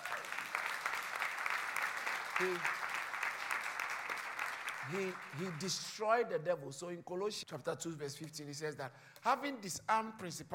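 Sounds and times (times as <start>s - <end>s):
audience clapping: 0.0s - 6.2s
speech: 2.4s - 2.8s, 4.8s - 10.5s.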